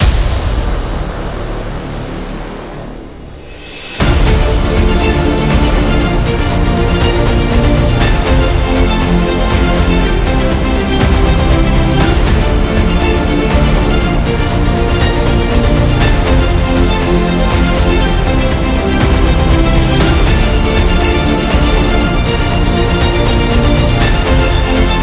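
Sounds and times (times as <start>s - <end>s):
epic inspirational background music loop: 0.0s - 25.0s.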